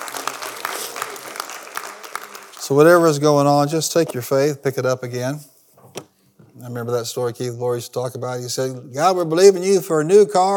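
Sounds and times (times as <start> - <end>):
audience clapping: 0.0 - 3.2
speech: 2.7 - 5.5, 6.7 - 10.5.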